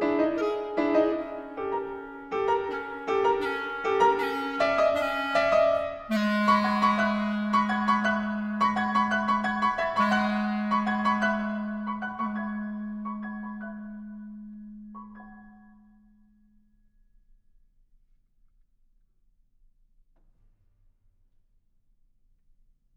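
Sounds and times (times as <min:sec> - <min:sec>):
clarinet: 0:00.0 - 0:16.1
pianoforte: 0:00.0 - 0:17.6.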